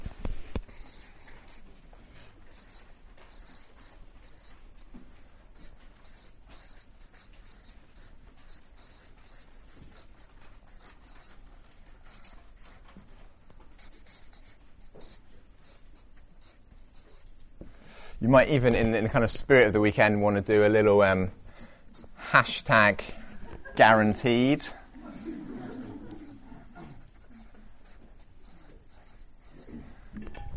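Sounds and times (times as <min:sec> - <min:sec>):
writing by hand: 0:00.6 - 0:17.4, 0:21.5 - 0:22.2, 0:25.0 - 0:30.0
speech: 0:18.2 - 0:21.4, 0:22.3 - 0:23.1, 0:23.8 - 0:24.8.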